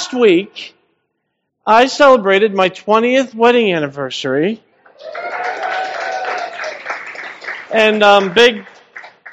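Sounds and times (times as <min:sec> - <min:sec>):
speech: 0:00.1 - 0:00.8, 0:01.6 - 0:05.3, 0:07.7 - 0:08.7
audience applause: 0:05.0 - 0:09.3.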